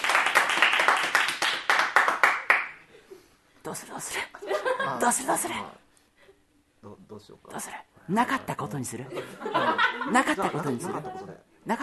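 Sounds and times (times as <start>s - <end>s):
audience clapping: 0.0s - 2.9s
speech: 3.7s - 5.8s, 6.8s - 11.8s
laughter: 4.4s - 5.1s, 9.1s - 11.4s.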